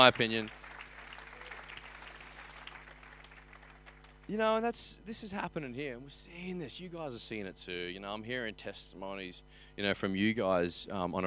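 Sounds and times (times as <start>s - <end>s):
speech: 0.0s - 0.6s, 4.3s - 11.2s
audience clapping: 0.0s - 4.6s.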